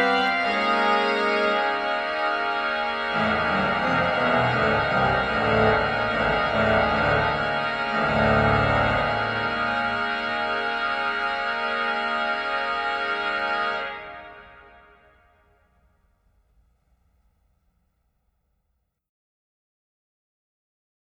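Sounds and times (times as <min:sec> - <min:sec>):
concert organ playing a postlude: 0:00.0 - 0:15.2.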